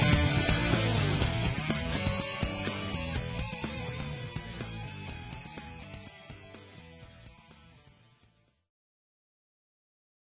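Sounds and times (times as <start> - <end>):
slap bass: 0.0 - 8.2.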